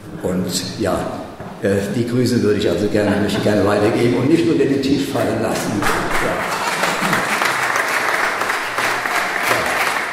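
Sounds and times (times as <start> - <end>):
speech: 0.2 - 6.6
audience applause: 6.2 - 10.1.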